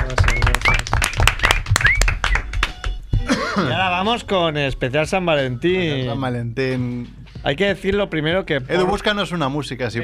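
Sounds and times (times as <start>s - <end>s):
applause: 0.0s - 3.1s
speech: 3.6s - 10.0s.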